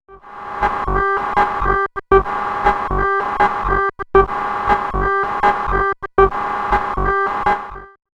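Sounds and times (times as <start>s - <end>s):
machine groove: 0.1s - 8.0s.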